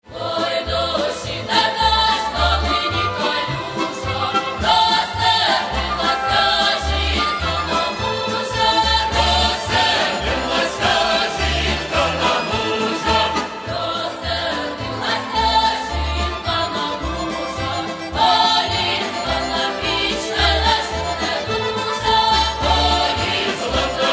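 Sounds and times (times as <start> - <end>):
folk choir singing: 0.0 - 24.1.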